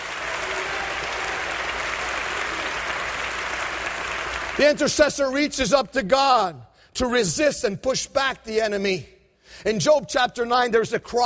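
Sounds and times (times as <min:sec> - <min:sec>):
crowd applause: 0:00.0 - 0:04.8
speech: 0:04.6 - 0:11.2.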